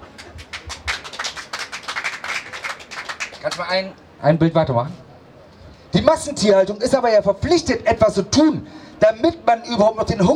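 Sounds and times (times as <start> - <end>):
applause: 0.0 - 3.8
speech: 3.4 - 5.0, 5.9 - 10.3.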